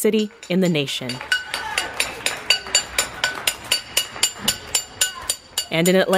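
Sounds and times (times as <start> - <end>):
speech: 0.0 - 1.4, 5.7 - 6.1
people clapping: 0.2 - 5.7
people banging pots: 0.2 - 6.1
people howling: 1.2 - 3.5.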